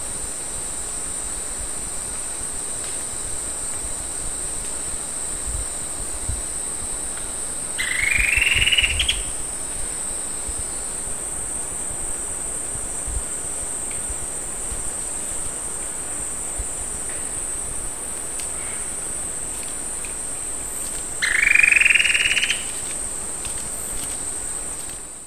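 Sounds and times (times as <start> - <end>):
shrill insect-like drone: 0.0 - 25.2
bird pulsed trill: 7.8 - 9.4, 21.2 - 22.7.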